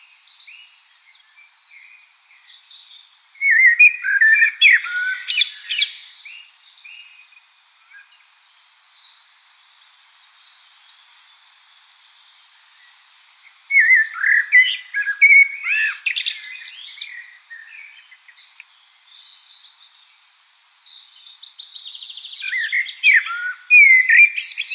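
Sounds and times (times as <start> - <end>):
Common blackbird singing: 0.0 - 24.7.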